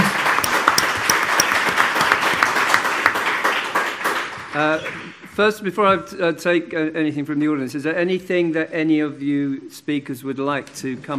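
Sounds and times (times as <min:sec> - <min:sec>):
audience applause at a panel debate: 0:00.0 - 0:05.0
speech: 0:04.6 - 0:11.1.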